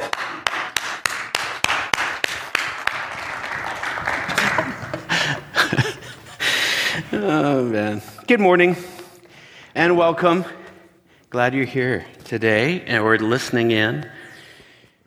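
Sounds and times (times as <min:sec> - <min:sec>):
audience applause: 0:00.0 - 0:06.9
laughter: 0:03.1 - 0:08.3
speech: 0:07.2 - 0:08.9, 0:09.8 - 0:10.6, 0:11.3 - 0:14.2.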